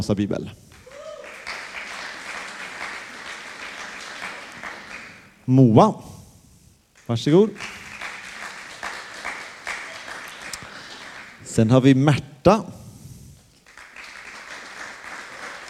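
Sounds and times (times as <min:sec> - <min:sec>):
speech: 0:00.0 - 0:00.7, 0:05.5 - 0:06.1, 0:07.1 - 0:07.7, 0:11.6 - 0:12.8
audience applause: 0:00.8 - 0:05.3, 0:07.6 - 0:11.5, 0:13.6 - 0:15.6.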